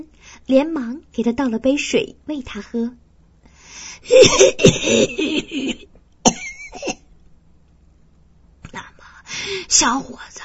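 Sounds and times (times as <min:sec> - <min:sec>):
speech: 0:00.0 - 0:03.0, 0:03.7 - 0:05.9, 0:09.6 - 0:10.4
violent coughing: 0:04.1 - 0:07.1.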